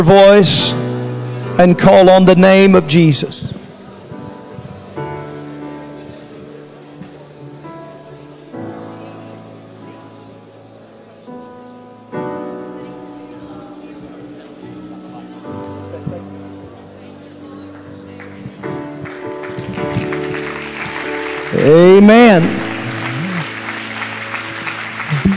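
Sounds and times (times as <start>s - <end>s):
speech: 0.0s - 0.8s, 1.6s - 3.5s
audience clapping hands: 17.7s - 25.3s.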